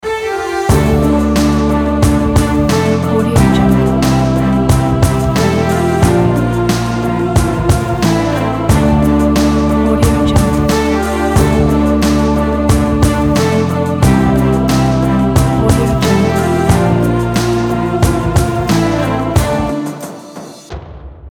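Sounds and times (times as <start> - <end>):
breaking news music loop: 0.7 - 20.6.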